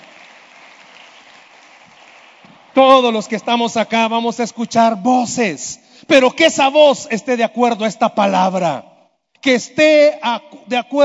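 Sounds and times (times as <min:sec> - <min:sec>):
crowd applauding: 0:00.0 - 0:03.1
speech: 0:02.8 - 0:11.0.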